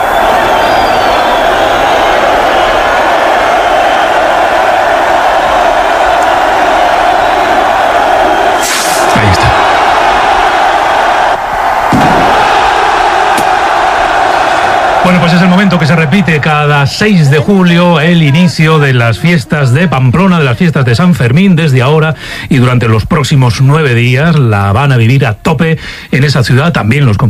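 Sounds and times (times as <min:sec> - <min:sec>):
festival crowd: 0:00.0 - 0:22.0
chupinazo rocket blast in Pamplona: 0:08.6 - 0:09.2, 0:11.8 - 0:12.8
speech: 0:15.1 - 0:27.2.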